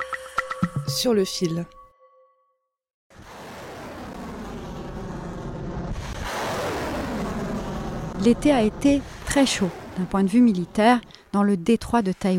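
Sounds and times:
speech: 0.9s - 1.8s, 8.2s - 12.3s
Chinese ballistic missile launches near the strait: 3.1s - 11.2s.

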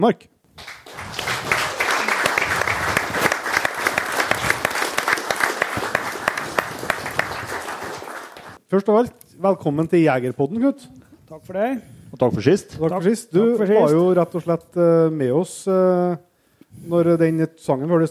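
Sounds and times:
speech: 0.0s - 1.3s, 8.7s - 18.0s
audience applause: 0.6s - 8.6s.

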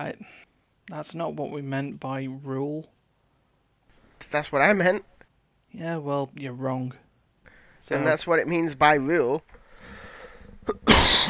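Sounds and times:
speech: 0.0s - 3.0s, 4.3s - 5.1s, 5.7s - 7.0s, 7.8s - 9.6s
person coughing: 10.6s - 11.2s.

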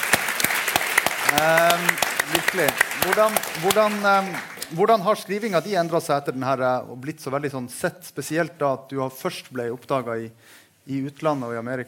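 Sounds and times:
audience applause: 0.0s - 4.8s
speech: 1.3s - 11.8s.

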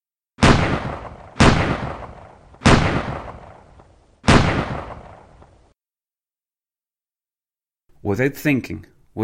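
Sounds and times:
gunshots from a Colt 1911 pistol: 0.4s - 5.6s
speech: 8.0s - 9.0s.

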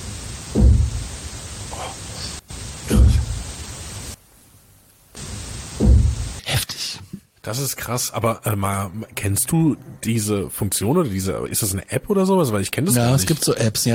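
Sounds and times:
knocking in a played recording: 0.5s - 1.1s, 5.8s - 6.3s
speech: 7.5s - 13.9s.

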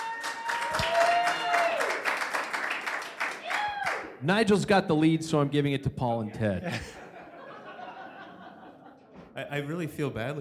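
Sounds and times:
voices cheering: 0.0s - 2.3s, 3.3s - 4.1s
audience applause: 0.0s - 4.1s
speech: 4.2s - 7.0s, 9.4s - 10.3s
laughter: 6.5s - 9.4s.

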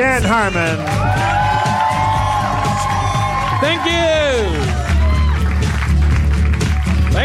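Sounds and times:
speech: 0.0s - 1.3s, 3.6s - 4.8s
audience applause: 0.5s - 7.2s.

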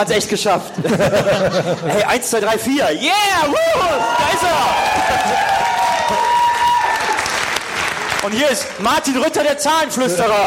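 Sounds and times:
speech: 0.0s - 6.3s, 8.2s - 10.4s
laughter: 0.7s - 2.3s
audience cheering and whooping: 3.2s - 8.2s
audience applause: 4.0s - 9.4s.

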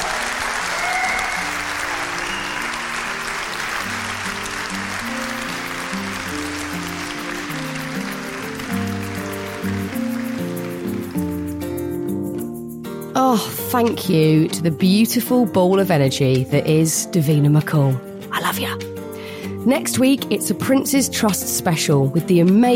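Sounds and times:
audience applause at live podcast: 0.0s - 11.4s
speech: 13.3s - 18.9s, 19.6s - 22.7s.

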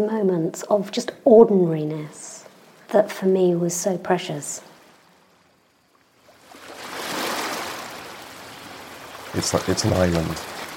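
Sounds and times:
speech: 0.0s - 2.3s, 2.9s - 4.7s, 9.4s - 10.6s
ocean breakers crashing on a beach: 6.2s - 10.7s.

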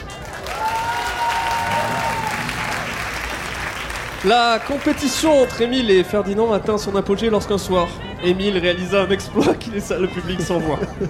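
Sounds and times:
audience applause: 0.0s - 5.4s
speech: 4.2s - 11.0s
laughter: 9.4s - 11.0s.

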